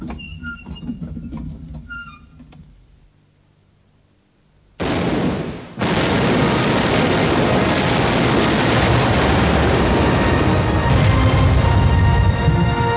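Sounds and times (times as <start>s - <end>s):
ship's cannon fire: 4.8s - 12.9s.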